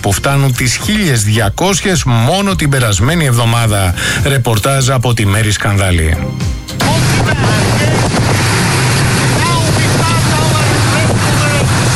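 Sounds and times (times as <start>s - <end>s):
speech: 0.0s - 7.9s
boat engine droning at sea: 6.7s - 11.9s
water rushing past: 6.8s - 11.9s
wind buffeting the microphone: 6.8s - 11.9s.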